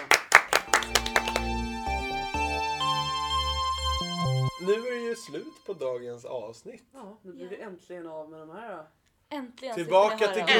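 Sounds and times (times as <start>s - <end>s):
hand clapping closing an episode: 0.0s - 2.6s
sustained tonal music: 0.5s - 6.3s
speech: 4.7s - 10.5s.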